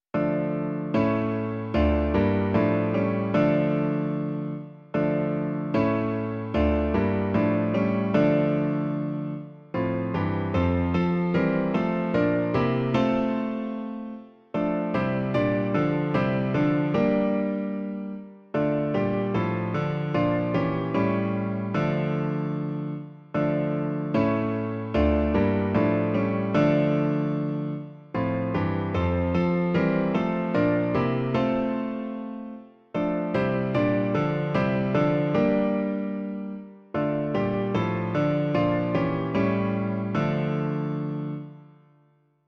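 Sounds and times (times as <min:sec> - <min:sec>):
piano: 0:00.0 - 0:42.4.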